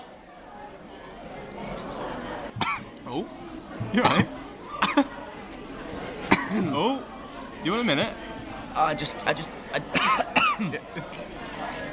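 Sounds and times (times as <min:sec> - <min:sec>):
man coughing after a drink goes down the wrong way: 0:02.6 - 0:02.9, 0:03.9 - 0:05.1, 0:06.3 - 0:06.8, 0:09.9 - 0:10.8
speech: 0:03.1 - 0:04.4, 0:07.6 - 0:08.2, 0:08.8 - 0:11.4.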